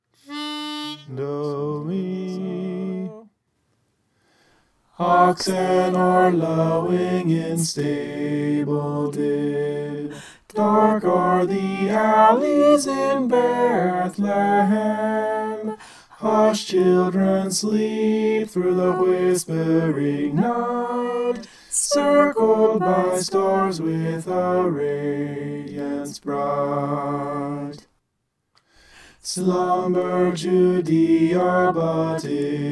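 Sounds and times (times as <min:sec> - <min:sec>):
soprano singing: 0:00.2 - 0:03.3, 0:05.0 - 0:27.8, 0:29.2 - 0:32.7.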